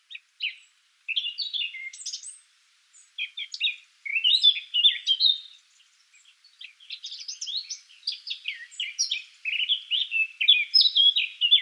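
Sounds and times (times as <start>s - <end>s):
Eurasian blackcap Sylvia atricapilla singing: 0.1s - 2.4s, 3.2s - 5.6s, 6.2s - 11.6s.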